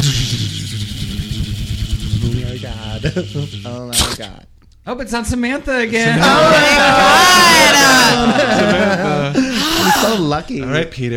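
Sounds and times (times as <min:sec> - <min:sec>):
bottle spinning on the floor during a game of spin the bottle: 0:00.0 - 0:03.9
speech: 0:03.0 - 0:11.1
laughter: 0:06.0 - 0:10.3.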